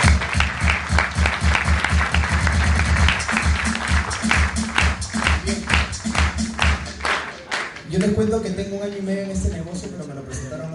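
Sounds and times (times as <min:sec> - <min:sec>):
audience applause: 0:00.0 - 0:08.0
speech: 0:08.0 - 0:10.7.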